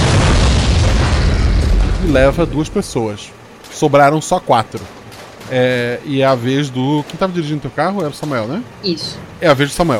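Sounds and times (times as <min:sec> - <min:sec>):
explosion sound effect: 0:00.0 - 0:03.0
speech: 0:02.1 - 0:09.9.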